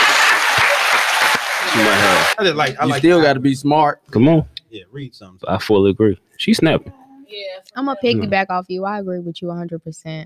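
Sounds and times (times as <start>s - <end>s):
crowd clapping: 0.0s - 3.2s
speech: 1.8s - 10.2s.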